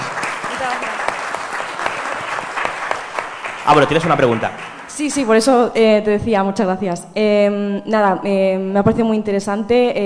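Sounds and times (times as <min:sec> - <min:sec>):
audience applause: 0:00.0 - 0:05.2
speech: 0:03.7 - 0:10.0.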